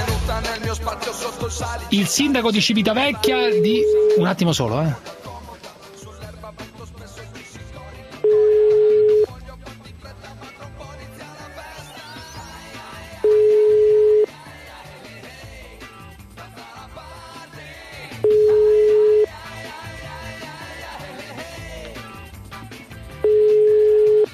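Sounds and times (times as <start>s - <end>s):
speech: 0.4s - 5.2s
telephone ringing: 3.2s - 4.5s, 8.2s - 9.3s, 13.2s - 14.3s, 18.2s - 19.3s, 23.2s - 24.3s.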